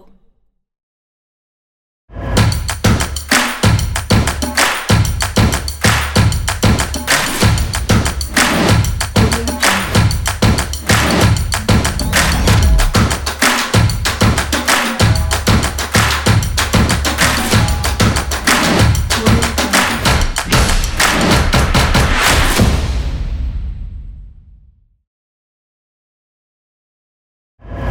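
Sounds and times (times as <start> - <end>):
energetic percussion drums: 2.4 - 23.5.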